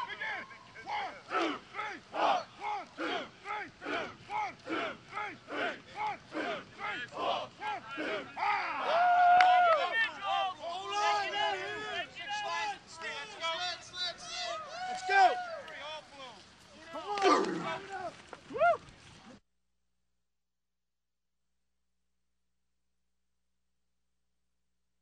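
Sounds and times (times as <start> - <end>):
amateur football fans crowd: 0.0 - 18.8.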